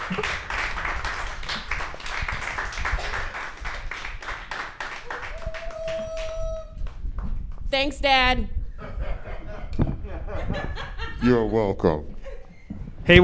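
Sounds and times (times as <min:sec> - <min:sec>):
audience applause as a performer is introduced on stage: 0:00.0 - 0:06.5
speech: 0:07.8 - 0:08.5, 0:11.2 - 0:12.1
laughter: 0:08.8 - 0:12.6.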